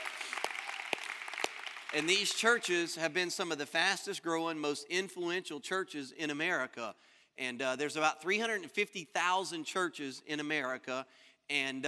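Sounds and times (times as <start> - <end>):
audience clapping: 0.0 - 3.0
speech: 1.9 - 11.8.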